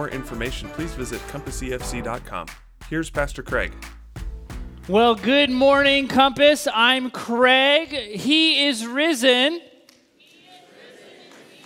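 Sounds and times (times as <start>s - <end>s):
speech: 0.0s - 4.0s, 4.8s - 9.7s
audience clapping: 0.0s - 6.0s, 11.2s - 11.6s.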